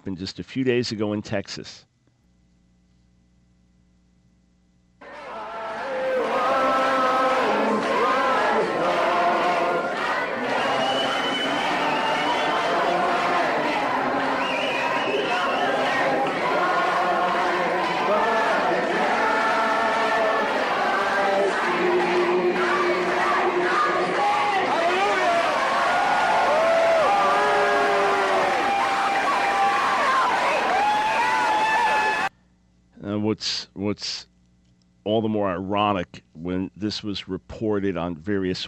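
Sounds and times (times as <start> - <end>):
speech: 0.0 - 1.9, 34.0 - 34.3, 35.4 - 36.1, 36.8 - 38.6
crowd singing a hymn: 5.0 - 28.4
voices chanting and shouting: 5.0 - 32.3.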